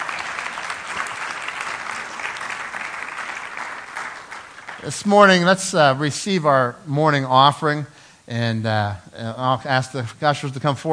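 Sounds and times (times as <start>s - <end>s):
church congregation applause welcoming guests during a morning service: 0.0s - 5.6s
speech: 4.8s - 10.9s.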